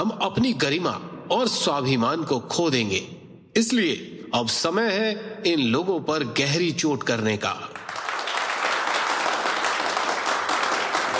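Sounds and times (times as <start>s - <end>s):
speech: 0.0s - 7.8s
applause echoing all around: 7.6s - 11.1s.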